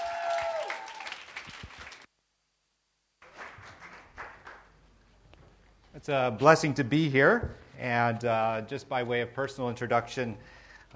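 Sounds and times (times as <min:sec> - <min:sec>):
audience applause: 0:00.0 - 0:02.1, 0:03.2 - 0:04.7
speech: 0:06.0 - 0:10.9.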